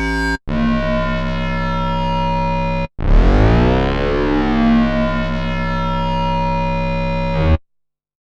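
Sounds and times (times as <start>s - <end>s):
Yamaha EX5R flanged square wave synthesizer: 0.0s - 7.6s.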